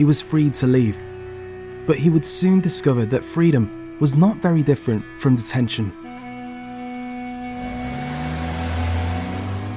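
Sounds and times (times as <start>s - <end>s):
speech: 0.0s - 1.1s, 1.8s - 6.2s
car engine pulling away: 7.4s - 9.7s.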